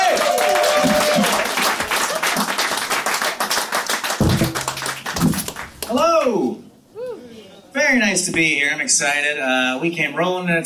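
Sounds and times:
audience applause: 0.0 - 6.0
speech: 8.2 - 10.6.

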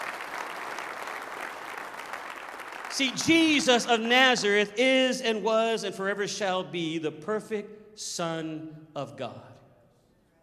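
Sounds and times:
audience clapping hands: 0.0 - 4.1
speech: 2.9 - 9.6.

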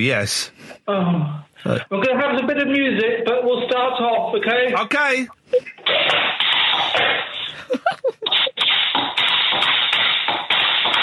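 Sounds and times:
speech: 0.0 - 6.3, 7.0 - 8.5
tap dancing footsteps on a floor: 6.0 - 7.4, 8.2 - 11.0
laughter: 7.4 - 8.6.

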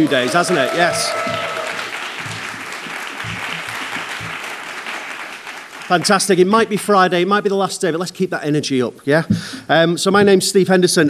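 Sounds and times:
speech: 0.0 - 1.5, 5.9 - 11.0
low shouts and whoops: 0.0 - 1.9
audience applause: 0.0 - 6.7.

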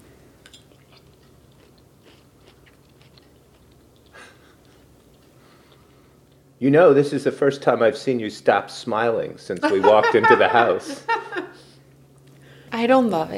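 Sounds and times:
chewing and biting while tasting the meat in a wrap: 0.4 - 6.4
speech: 6.6 - 11.1, 12.8 - 13.3
laughter: 9.6 - 11.7.

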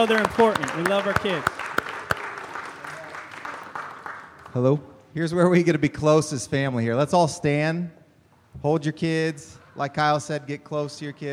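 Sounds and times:
speech: 0.0 - 1.6, 4.5 - 8.0, 8.6 - 11.3
audience clapping for the kids: 0.0 - 4.8.

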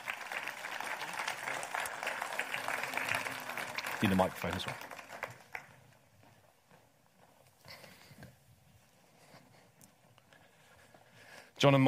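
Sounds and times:
audience applauding: 0.0 - 6.2
speech: 4.0 - 4.9, 11.6 - 11.8.

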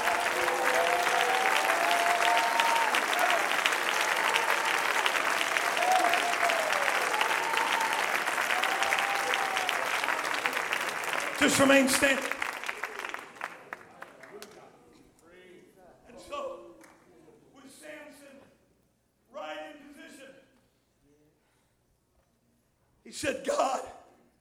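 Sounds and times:
audience clapping hands: 0.0 - 14.8, 16.8 - 17.0
speech: 11.5 - 12.4.

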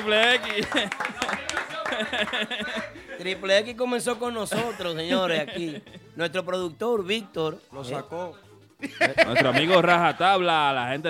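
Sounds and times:
applause: 0.0 - 3.0
laughter: 0.0 - 3.7, 4.3 - 6.2, 8.8 - 10.6
speech: 0.0 - 11.0.

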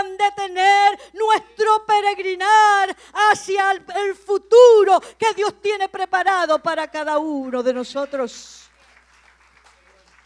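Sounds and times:
speech: 0.0 - 8.7
audience applause: 8.6 - 10.2.

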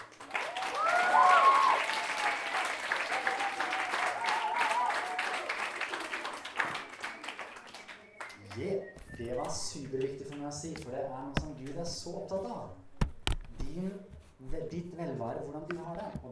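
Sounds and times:
audience applause: 0.0 - 8.7
voices cheering: 0.3 - 8.3
speech: 8.6 - 12.8, 13.8 - 16.3.

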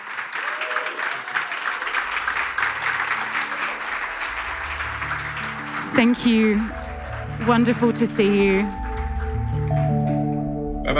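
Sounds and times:
audience applause: 0.0 - 10.6
speech: 5.9 - 6.8, 7.4 - 8.8.

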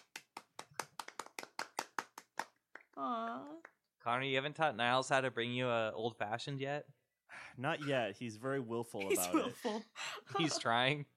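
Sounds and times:
applause: 0.0 - 3.8
speech: 3.0 - 7.0, 7.6 - 11.1.

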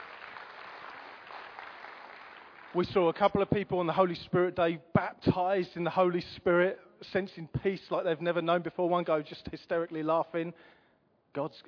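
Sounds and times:
crowd applauding: 0.0 - 3.0
speech: 2.7 - 11.6.

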